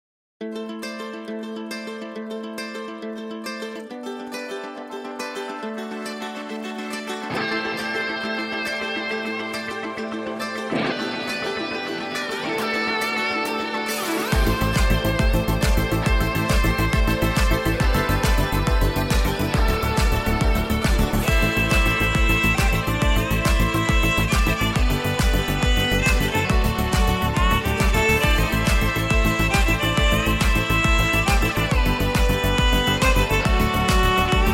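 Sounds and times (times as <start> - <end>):
vocal removed karaoke instrumental: 7.2 - 34.5.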